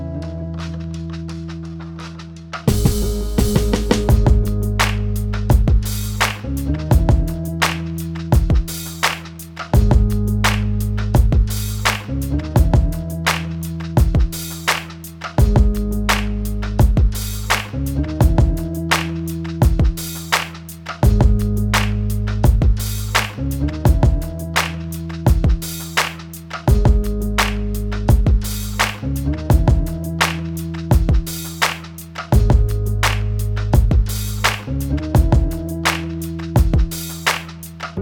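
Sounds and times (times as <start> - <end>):
hip hop beat at 85 BPM in A flat minor: 2.7 - 37.9.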